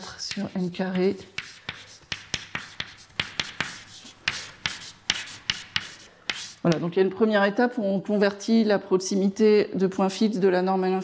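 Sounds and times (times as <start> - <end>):
writing on a board during a maths lecture: 0.0 - 6.6
speech: 0.4 - 1.4, 6.6 - 11.0.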